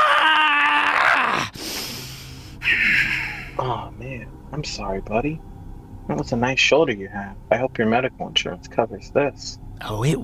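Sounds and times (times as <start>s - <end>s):
voice imitating a scream of pain: 0.0s - 1.5s
speech: 3.6s - 5.5s, 6.1s - 10.2s.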